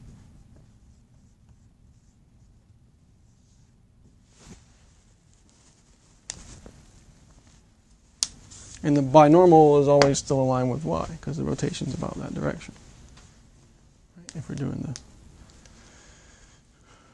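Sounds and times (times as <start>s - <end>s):
scratchy strokes writing an equation on a board: 0.0s - 4.2s
low hum: 0.0s - 17.1s
speech: 8.8s - 12.8s, 14.3s - 15.1s.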